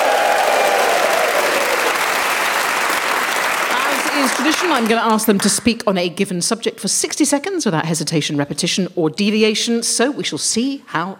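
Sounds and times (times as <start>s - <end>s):
audience whooping and cheering: 0.0s - 4.9s
speech: 4.2s - 11.1s.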